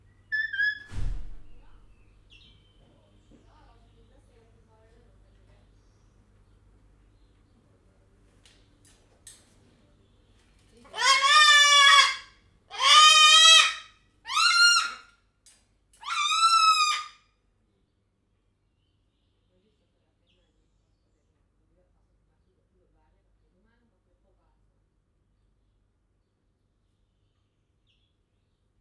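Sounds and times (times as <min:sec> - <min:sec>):
white cockatoo calling in a zoo: 0:00.3 - 0:00.9, 0:10.9 - 0:15.1, 0:16.0 - 0:17.2.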